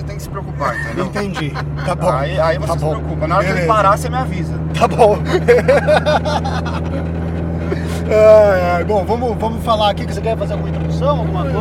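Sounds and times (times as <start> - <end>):
engine exhaust drone: 0.0 - 11.5
speech: 0.2 - 11.5
laughter: 0.5 - 3.8, 4.9 - 8.3.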